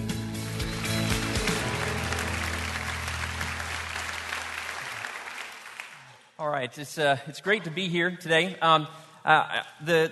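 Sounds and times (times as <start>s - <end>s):
church congregation applause welcoming a speaker: 0.5s - 6.3s
speech: 6.4s - 10.1s.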